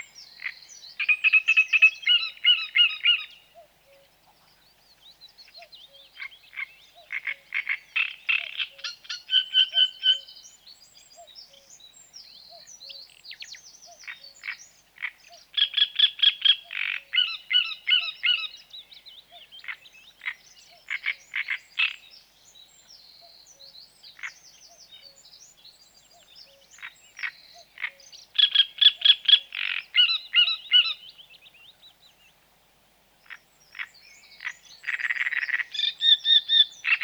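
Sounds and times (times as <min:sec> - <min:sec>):
great reed warbler: 0:00.0 - 0:37.0.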